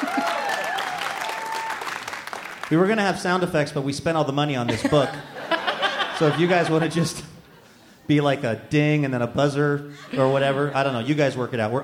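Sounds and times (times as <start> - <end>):
laughter: 0.0 - 0.5, 4.6 - 8.1, 9.8 - 11.8
audience applause: 0.0 - 2.8
speech: 2.7 - 5.4, 6.2 - 7.3, 8.1 - 11.8.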